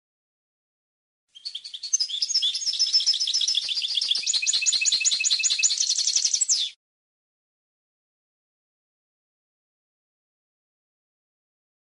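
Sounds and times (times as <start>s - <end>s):
European goldfinch singing a bright twitter of chirps and jingling notes: 1.4s - 6.7s.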